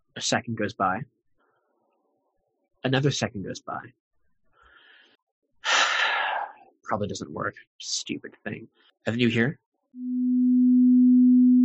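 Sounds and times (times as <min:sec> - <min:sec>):
speech: 0:00.2 - 0:01.2, 0:02.8 - 0:04.0, 0:06.9 - 0:10.6
pure low ringing tone: 0:10.0 - 0:11.6.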